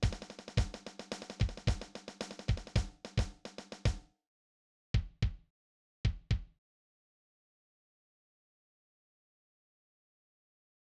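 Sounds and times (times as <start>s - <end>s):
drum march: 0.0s - 4.0s.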